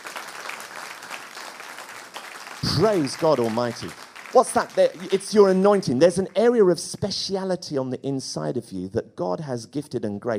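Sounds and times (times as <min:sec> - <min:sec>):
audience clapping: 0:00.0 - 0:06.9
speech: 0:02.6 - 0:10.3.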